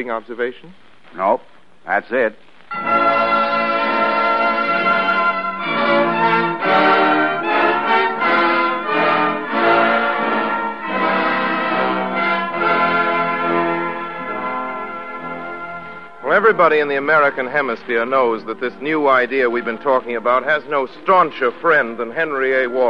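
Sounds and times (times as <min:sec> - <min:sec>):
speech: 0:00.0 - 0:03.4, 0:16.4 - 0:22.8
bells ringing: 0:02.7 - 0:22.8.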